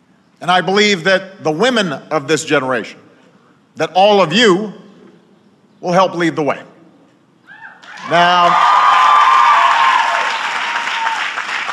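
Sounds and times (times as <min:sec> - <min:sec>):
speech: 0:00.4 - 0:03.0, 0:03.8 - 0:04.8, 0:05.8 - 0:06.7, 0:08.0 - 0:08.7
audience clapping at a Barnard College commencement speech: 0:07.8 - 0:11.7.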